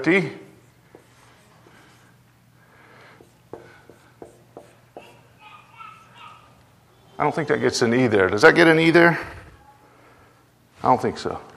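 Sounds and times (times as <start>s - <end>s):
speech: 0.0s - 0.4s, 7.2s - 9.4s, 10.8s - 11.5s
low steady hum: 0.0s - 11.5s
writing on a board: 0.6s - 2.2s, 2.8s - 6.2s.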